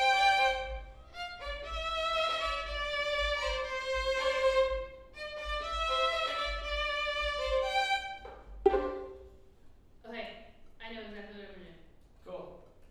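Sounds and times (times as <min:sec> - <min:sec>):
cello: 0:00.0 - 0:09.4.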